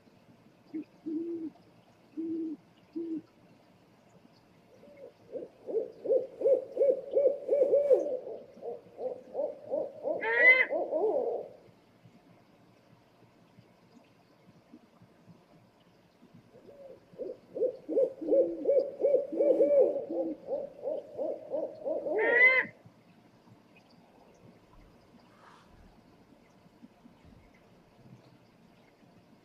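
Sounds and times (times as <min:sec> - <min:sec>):
owl hooting: 0:01.0 - 0:01.5, 0:04.8 - 0:11.6, 0:16.7 - 0:22.8.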